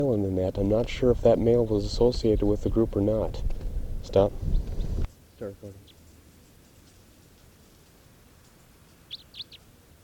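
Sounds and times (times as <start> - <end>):
speech: 0.0 - 4.6, 5.4 - 5.9
steady low hiss: 0.0 - 10.0
wild bird's low raspy call: 9.1 - 9.7.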